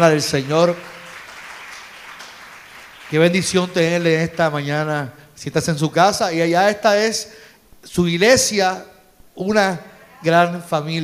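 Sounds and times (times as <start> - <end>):
speech: 0.0 - 0.9, 3.1 - 11.0
audience applause: 0.2 - 4.4.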